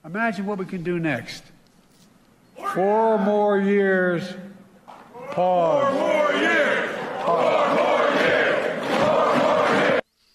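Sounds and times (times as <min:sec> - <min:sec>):
speech: 0:00.1 - 0:01.6, 0:02.7 - 0:04.5, 0:05.3 - 0:07.8
crowd cheering at a US presidential campaign speech: 0:05.1 - 0:10.0.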